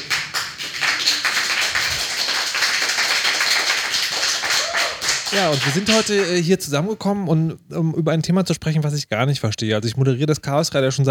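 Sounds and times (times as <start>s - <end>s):
audience applause: 0.0s - 6.4s
speech: 5.3s - 11.0s.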